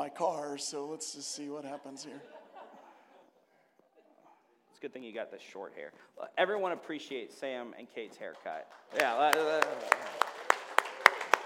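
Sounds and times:
speech: 0.1 - 2.4, 4.8 - 10.3
laughter: 1.4 - 4.2
people clapping: 8.0 - 11.4.

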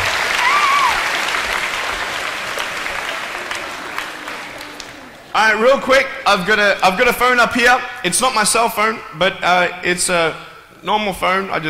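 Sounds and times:
audience applause: 0.0 - 5.4
crowd cheers: 0.0 - 5.6
speech: 5.4 - 11.6.

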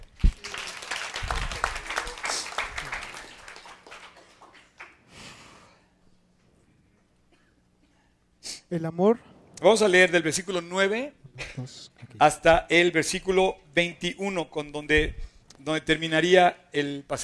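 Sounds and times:
audience applause: 0.0 - 5.1
speech: 8.7 - 17.2.

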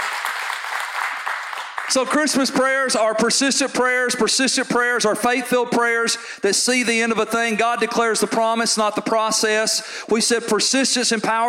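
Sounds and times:
audience applause: 0.0 - 2.2
speech: 1.9 - 11.4.

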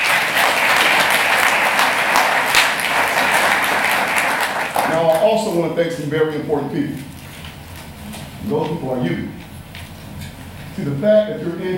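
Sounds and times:
audience applause: 0.0 - 5.6
speech: 5.0 - 7.1, 8.4 - 9.4, 10.8 - 11.7.

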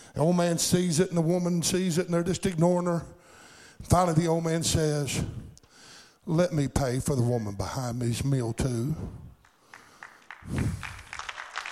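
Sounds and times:
speech: 0.2 - 3.2, 3.9 - 5.4, 6.3 - 9.2, 10.5 - 11.0
audience applause: 9.7 - 11.7.

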